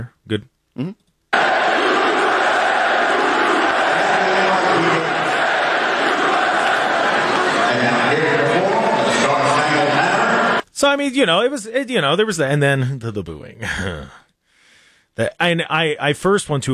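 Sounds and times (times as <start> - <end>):
speech: 0.0 - 1.5, 10.8 - 14.2, 15.2 - 16.7
crowd chanting USA: 1.3 - 10.6.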